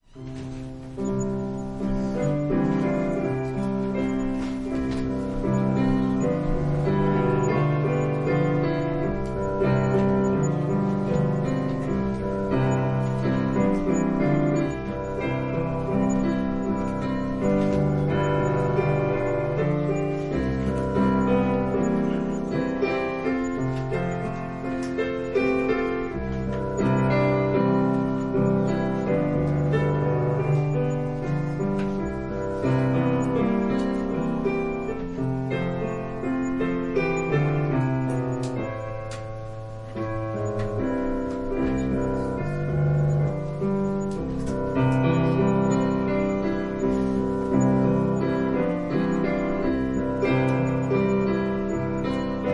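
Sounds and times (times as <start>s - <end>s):
piano prelude: 0.0s - 52.5s.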